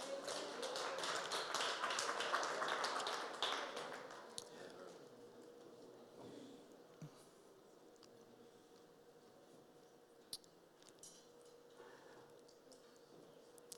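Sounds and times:
audience clapping hands: 0.0 - 5.0.

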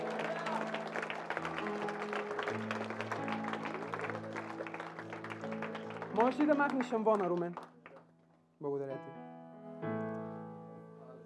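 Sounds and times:
audience applauding: 0.0 - 8.1
speech: 6.2 - 7.7, 8.6 - 9.2, 9.8 - 10.0.

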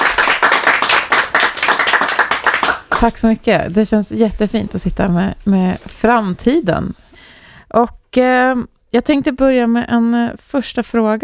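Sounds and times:
studio audience applauding: 0.0 - 3.7
speech: 3.0 - 7.0, 7.7 - 11.2.

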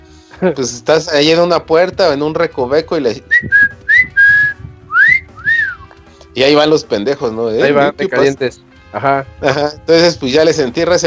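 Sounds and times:
speech: 0.4 - 3.8, 6.4 - 11.0
person whistling to attract guards: 3.3 - 6.0.

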